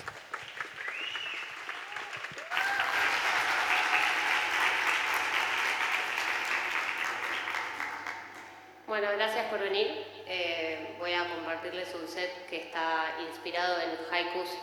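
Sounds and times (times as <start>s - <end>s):
audience applause for a performer at a live event in Buenos Aires: 0.0s - 8.7s
speech: 9.0s - 14.6s.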